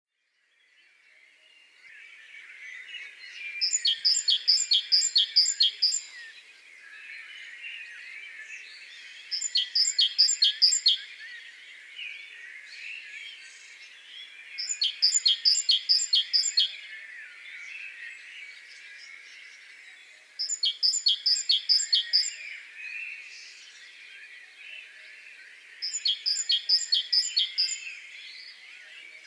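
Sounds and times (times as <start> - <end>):
Great tit singing: 2.4 - 6.4, 8.6 - 11.6, 12.4 - 24.6, 25.6 - 29.2.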